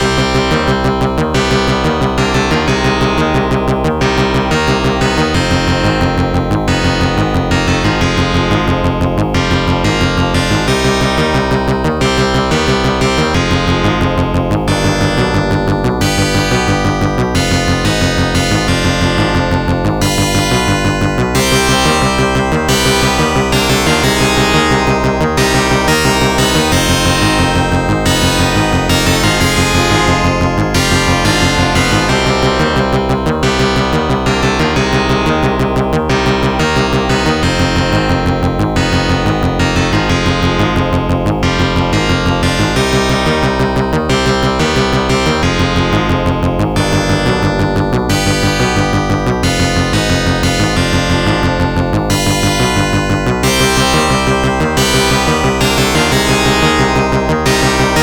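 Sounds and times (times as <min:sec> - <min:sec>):
arcade game cave stage music: 0:00.0 - 0:58.0.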